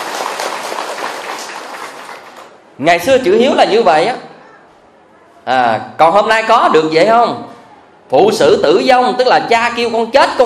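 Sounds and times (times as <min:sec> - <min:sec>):
audience applause for a woman at a talk: 0:00.0 - 0:02.6
speech: 0:02.8 - 0:04.3, 0:05.5 - 0:07.5, 0:08.1 - 0:10.4.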